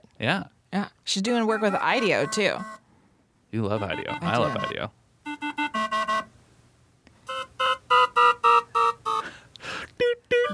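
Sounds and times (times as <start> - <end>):
speech: 0.2 - 2.8, 3.5 - 5.0
cardiovascular caution alarm beeping: 1.5 - 2.8, 3.8 - 6.3, 7.3 - 9.2.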